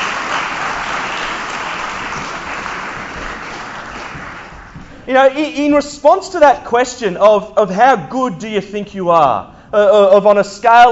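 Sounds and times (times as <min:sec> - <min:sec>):
audience applause: 0:00.0 - 0:05.0
speech: 0:05.1 - 0:10.9.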